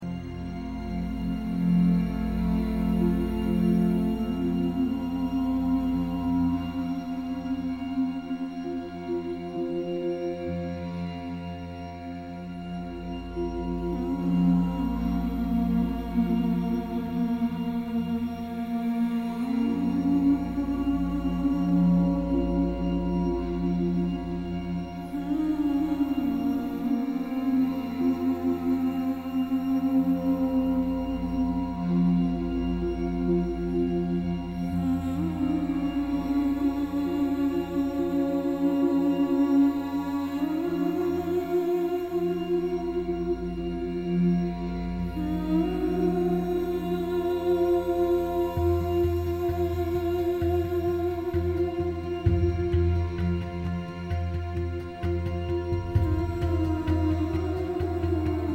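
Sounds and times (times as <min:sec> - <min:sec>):
instrumental music: 0:00.0 - 0:58.5.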